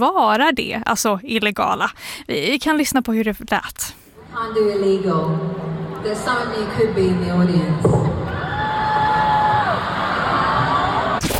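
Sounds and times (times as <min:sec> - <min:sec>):
speech: 0:00.0 - 0:08.0
large audience booing: 0:08.3 - 0:11.2.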